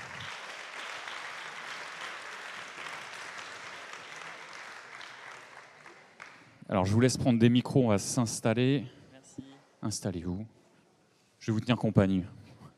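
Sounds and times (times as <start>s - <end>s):
audience applause: 0.0s - 6.5s
speech: 6.7s - 9.0s, 9.8s - 10.6s, 11.4s - 12.4s.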